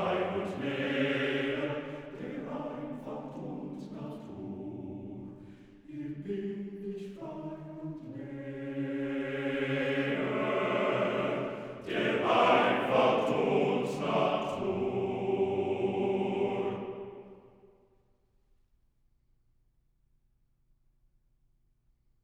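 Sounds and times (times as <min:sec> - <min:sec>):
quartet of unaccompanied male voices singing: 0:00.0 - 0:17.3.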